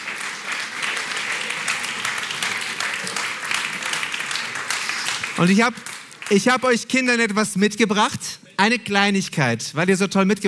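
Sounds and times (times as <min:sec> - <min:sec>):
audience applause for children: 0:00.0 - 0:06.7
speech: 0:05.4 - 0:10.4.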